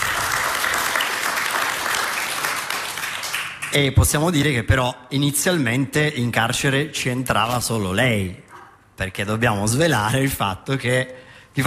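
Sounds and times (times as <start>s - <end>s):
audience applause: 0.0s - 3.7s
speech: 3.7s - 8.4s, 9.0s - 11.6s.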